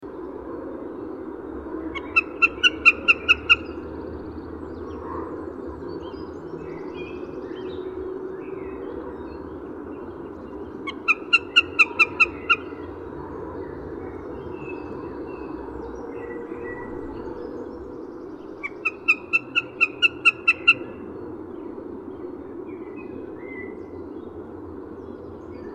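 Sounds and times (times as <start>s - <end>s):
Garrulus glandarius: 2.0s - 3.8s, 10.9s - 12.8s, 18.6s - 20.9s.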